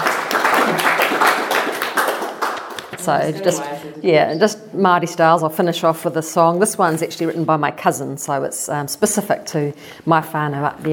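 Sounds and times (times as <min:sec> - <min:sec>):
audience clapping: 0:00.0 - 0:03.8
speech: 0:03.1 - 0:10.9.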